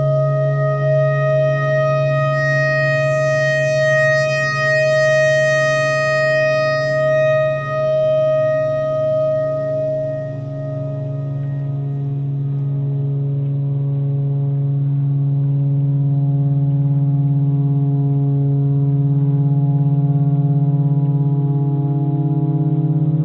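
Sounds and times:
pentatonic clarinet notes: 0.0 - 13.2
tornado siren: 0.0 - 23.2.

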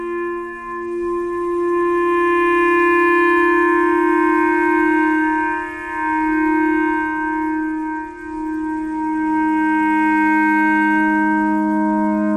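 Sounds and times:
clarinet playing pentatonic: 0.0 - 12.3.

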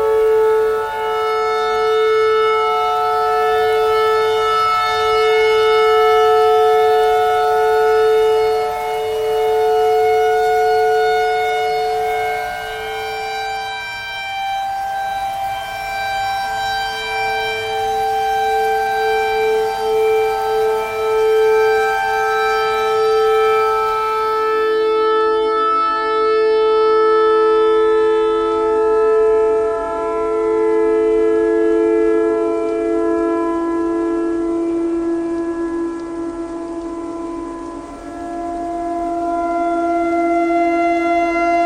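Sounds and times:
clarinet notes: 0.0 - 41.6
tornado siren: 0.0 - 41.6.

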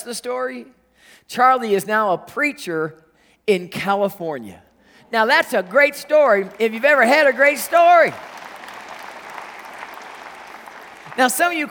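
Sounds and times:
speech: 0.0 - 8.3, 11.2 - 11.6
polite applause from a church congregation: 5.2 - 11.6.

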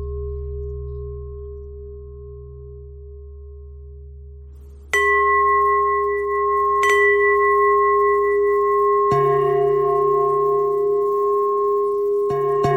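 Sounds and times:
bells ringing: 4.9 - 12.7.

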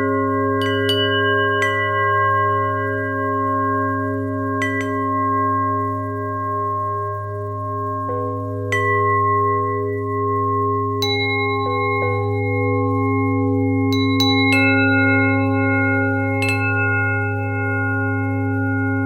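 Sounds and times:
bell: 0.0 - 19.0.

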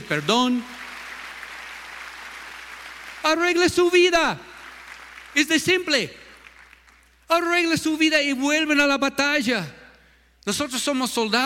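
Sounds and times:
audience applause: 0.0 - 7.2
speech: 0.1 - 0.8, 3.2 - 4.5, 5.3 - 6.2, 7.3 - 9.8, 10.4 - 11.4.

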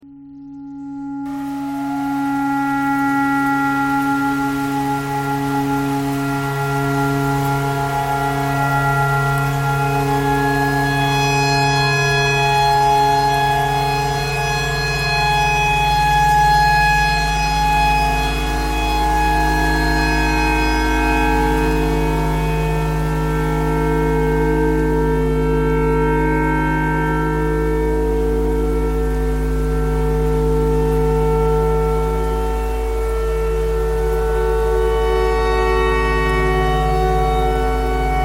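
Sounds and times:
clarinet playing pentatonic tornado siren tune: 0.0 - 38.2.

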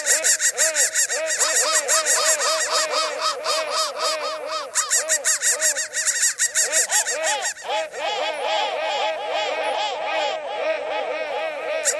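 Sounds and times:
crow cawing: 0.0 - 11.9.

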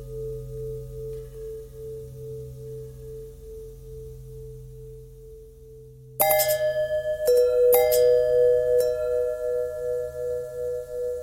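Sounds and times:
long bell ringing: 6.2 - 11.0.

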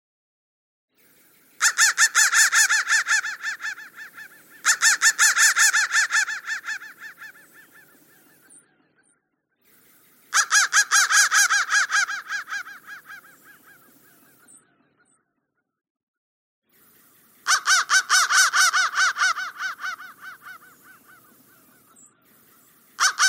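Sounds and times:
crow cawing: 1.6 - 8.2, 10.3 - 14.4, 17.4 - 22.0, 23.0 - 23.2.

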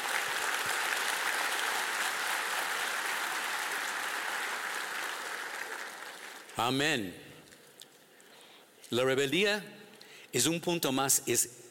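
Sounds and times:
audience applause: 0.0 - 6.6
speech: 6.6 - 7.3, 8.9 - 11.6.

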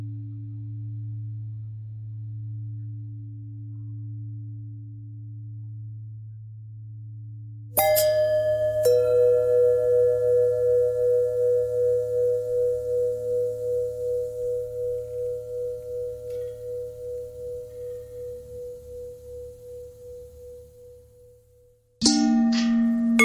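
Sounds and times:
long bending bell tones: 7.8 - 23.2.

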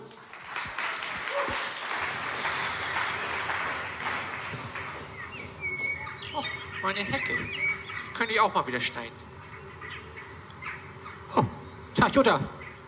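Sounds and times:
audience applause for the theatre: 0.0 - 6.6
speech: 6.8 - 7.6, 8.2 - 9.3, 12.1 - 12.6.

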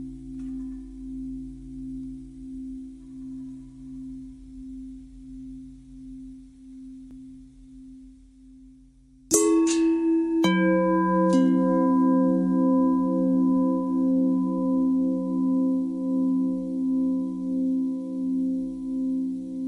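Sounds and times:
long pentatonic bell tones: 9.3 - 19.6.

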